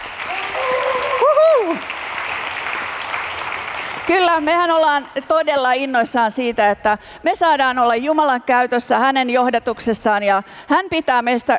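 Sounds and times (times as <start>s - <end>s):
audience applause: 0.0s - 5.2s
whoop or whistle: 0.3s - 1.8s
speech: 4.1s - 11.5s.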